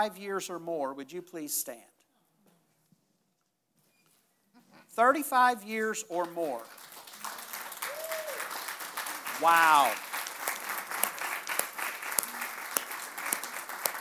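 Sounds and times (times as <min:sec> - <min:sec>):
speech: 0:00.0 - 0:02.0, 0:05.0 - 0:06.9, 0:09.4 - 0:10.1
audience applause: 0:06.6 - 0:13.9.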